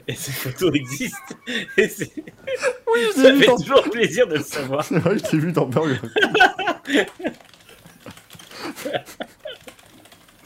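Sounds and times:
laughter: 0.0 - 9.7
speech: 0.1 - 7.5
typing a search into Google on a computer keyboard: 6.3 - 10.4.

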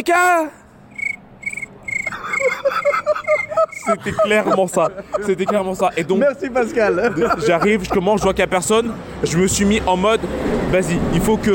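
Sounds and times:
speech: 0.0 - 0.6, 2.6 - 11.5
cricket chirping sound effect: 0.9 - 6.0
laughter: 2.1 - 9.0.

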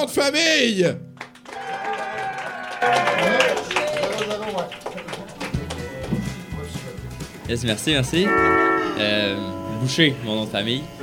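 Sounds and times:
speech: 0.0 - 1.1, 2.8 - 3.4, 7.5 - 11.0
audience applause: 1.2 - 6.4.

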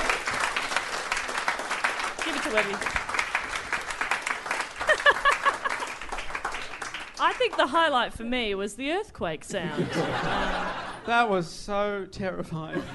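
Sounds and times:
round of applause: 0.0 - 7.7
speech: 2.5 - 3.0, 7.2 - 12.9
laughter: 4.8 - 6.1, 9.5 - 11.2, 12.7 - 12.9.

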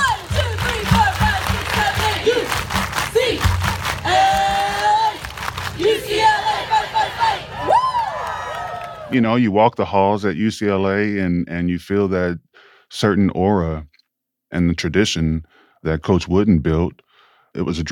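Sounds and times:
large UCLA crowd clapping in a rhythmic chant pattern: 0.0 - 9.2
shouts and high whoops: 4.0 - 9.2
speech: 9.1 - 13.9, 14.5 - 17.8.

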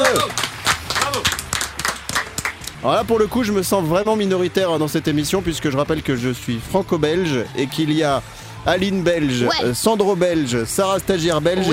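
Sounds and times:
applause: 0.0 - 3.6, 9.2 - 11.7
speech: 0.1 - 0.4, 2.8 - 11.7.

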